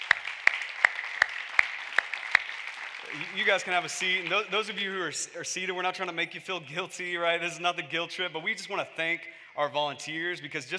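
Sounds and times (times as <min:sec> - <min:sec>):
audience applause: 0:00.0 - 0:04.8
speech: 0:03.1 - 0:10.7.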